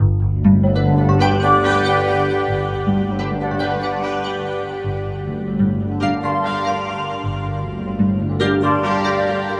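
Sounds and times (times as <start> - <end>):
keyboard: 0.0 - 9.5.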